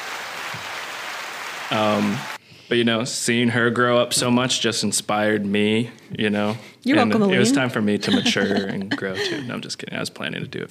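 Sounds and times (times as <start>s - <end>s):
canned applause from an applause button: 0.0s - 2.4s
speech: 1.7s - 10.6s
laughter: 7.3s - 9.7s.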